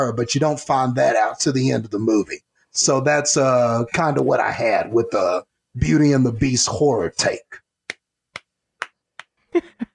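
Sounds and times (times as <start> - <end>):
speech: 0.0 - 7.6
slow hand clap: 7.9 - 9.4.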